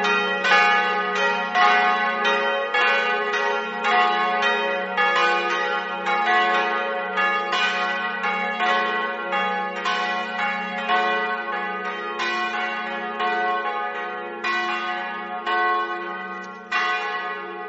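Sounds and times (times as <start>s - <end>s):
bells ringing: 0.0s - 17.6s.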